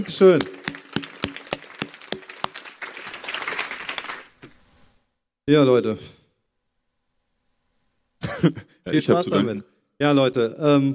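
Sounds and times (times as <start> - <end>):
speech: 0.0 - 0.6, 5.5 - 6.2, 8.4 - 10.9
applause: 0.0 - 4.4.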